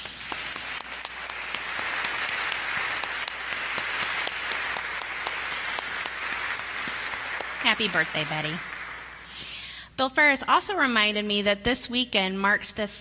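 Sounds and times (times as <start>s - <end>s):
audience applause: 0.0s - 9.4s
speech: 7.7s - 8.7s, 10.0s - 12.9s.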